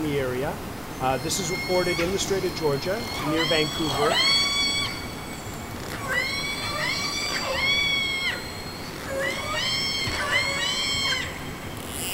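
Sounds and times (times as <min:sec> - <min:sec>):
speech: 0:00.0 - 0:04.4
whale calls recorded underwater: 0:01.2 - 0:12.1.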